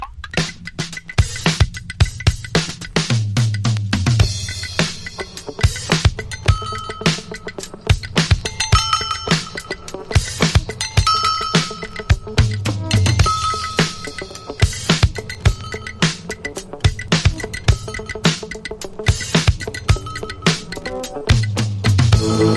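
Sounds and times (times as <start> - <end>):
instrumental beats: 0.0 - 22.5.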